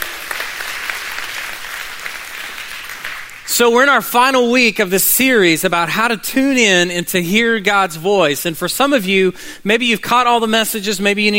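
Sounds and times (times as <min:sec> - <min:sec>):
audience applause: 0:00.0 - 0:03.5
speech: 0:03.6 - 0:11.3.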